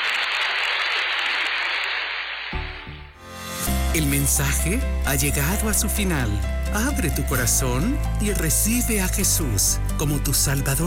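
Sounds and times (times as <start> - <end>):
audience applause: 0.0 - 2.8
speech: 4.0 - 10.8.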